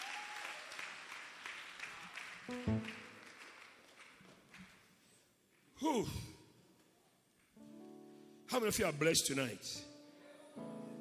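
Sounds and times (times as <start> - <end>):
audience clapping hands: 0.0 - 5.6
speech: 2.5 - 2.8, 5.8 - 6.3, 8.6 - 9.9.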